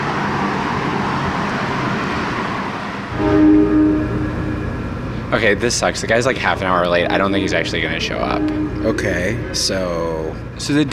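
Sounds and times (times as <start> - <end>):
subway train rumbling through a station: 0.0 - 10.9
tonal squeals or horn-like whine: 3.1 - 10.9
speech: 5.3 - 10.9.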